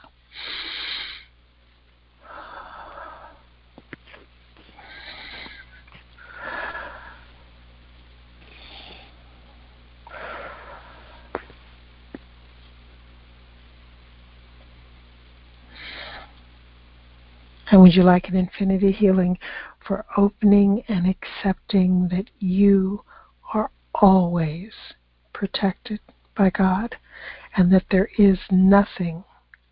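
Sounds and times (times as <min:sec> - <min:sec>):
deep breathing during a guided healing prayer: 0:00.3 - 0:01.3, 0:02.2 - 0:03.5, 0:04.7 - 0:07.5, 0:08.4 - 0:11.6, 0:15.7 - 0:16.4, 0:19.4 - 0:19.8, 0:23.1 - 0:23.5, 0:27.0 - 0:27.6
speech: 0:17.7 - 0:29.3.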